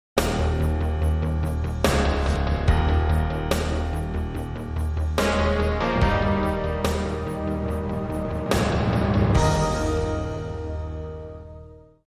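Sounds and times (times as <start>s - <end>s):
synth: 0.2s - 11.8s.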